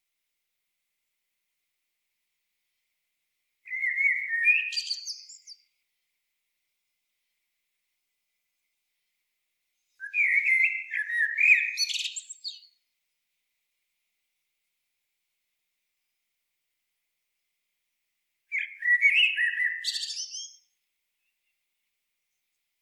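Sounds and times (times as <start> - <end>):
Eurasian blackbird singing: 3.7 - 5.7, 10.0 - 12.8, 18.5 - 20.7.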